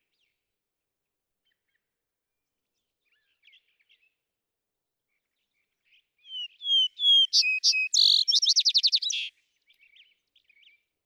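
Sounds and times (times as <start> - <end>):
vesper sparrow singing: 6.3 - 9.3.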